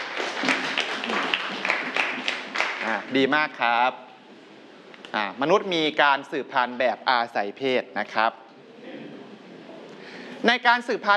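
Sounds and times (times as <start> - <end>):
students clapping: 0.0 - 3.1
speech: 3.1 - 4.1, 5.1 - 8.4, 10.4 - 11.1.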